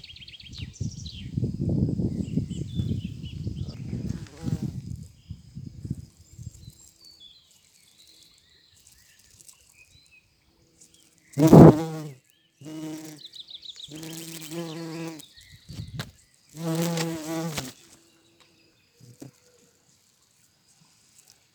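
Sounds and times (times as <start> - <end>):
bumblebees buzzing: 1.6 - 7.0, 11.3 - 18.2.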